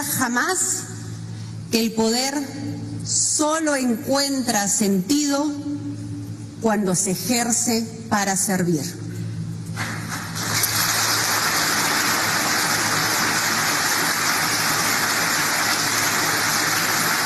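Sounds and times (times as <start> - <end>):
speech: 0.2 - 1.0, 1.7 - 6.0, 6.6 - 9.1
applause from supporters in parliament: 9.8 - 17.2.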